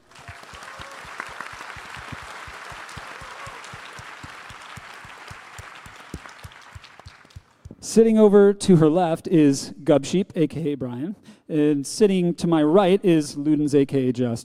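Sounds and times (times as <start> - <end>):
audience applause: 0.0 - 7.6
speech: 7.9 - 14.4.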